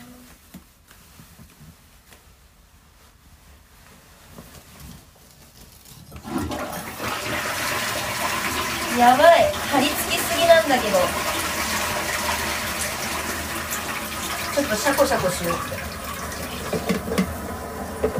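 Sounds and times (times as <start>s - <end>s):
toilet flushing: 6.2s - 18.1s
speech: 9.0s - 11.3s, 14.6s - 15.8s.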